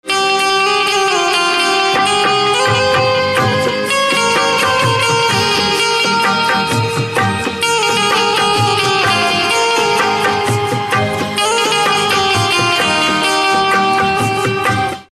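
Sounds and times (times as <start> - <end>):
banjo instrumental ringtone: 1.2 - 15.0.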